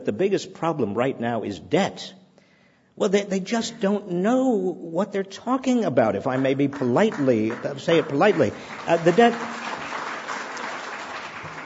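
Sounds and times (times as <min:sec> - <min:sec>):
speech: 0:00.0 - 0:02.2, 0:03.0 - 0:09.6
audience applause during a speech about government debt: 0:06.3 - 0:11.6.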